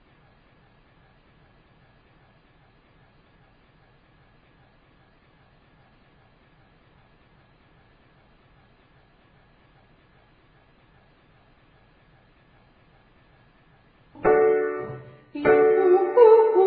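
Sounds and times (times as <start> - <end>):
person singing ascending triads and octaves to high D: 14.2 - 16.6.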